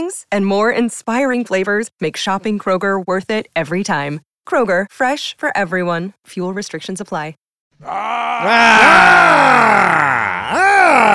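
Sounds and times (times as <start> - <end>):
speech: 0.0 - 11.1
loud drawn-out vocal growl: 7.8 - 11.1.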